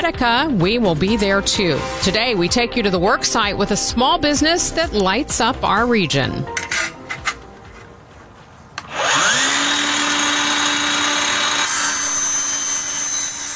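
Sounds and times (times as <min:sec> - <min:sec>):
speech: 0:00.0 - 0:06.9
tabletop miter saw trimming lighting track: 0:08.8 - 0:13.5.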